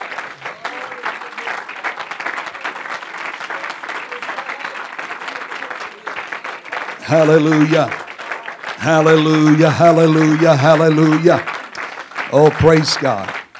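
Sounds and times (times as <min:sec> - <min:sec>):
audience applause: 0:00.0 - 0:13.5
laughter: 0:04.1 - 0:13.4
indistinct voices: 0:06.9 - 0:13.4
speech: 0:07.1 - 0:08.0, 0:08.8 - 0:11.5, 0:12.3 - 0:13.4.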